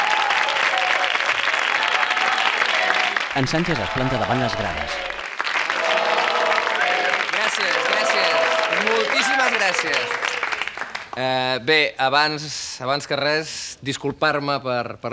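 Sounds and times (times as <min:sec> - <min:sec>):
audience applauding: 0:00.0 - 0:11.2
speech: 0:03.4 - 0:05.2, 0:09.5 - 0:10.3, 0:11.2 - 0:15.1.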